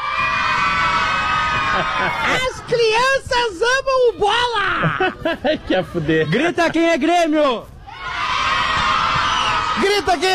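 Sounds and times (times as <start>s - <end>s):
crowd of children shouting: 0.0s - 2.7s, 7.9s - 10.3s
laughter: 1.5s - 2.7s, 4.7s - 7.0s
speech: 1.8s - 7.7s, 9.8s - 10.3s.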